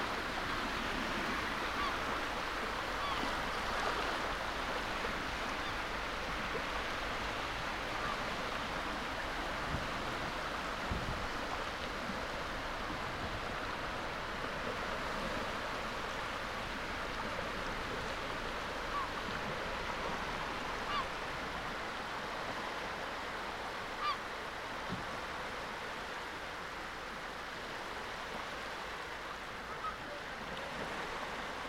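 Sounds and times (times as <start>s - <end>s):
surf at Nothe Fort on England's Jurassic coast: 0.0s - 31.6s.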